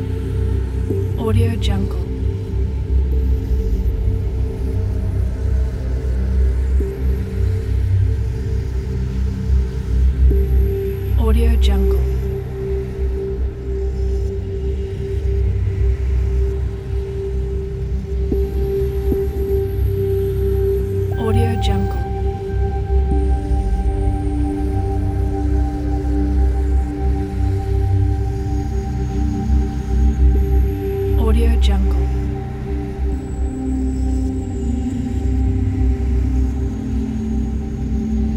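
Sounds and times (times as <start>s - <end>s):
abstracted ambient soundscape: 0.0s - 38.3s.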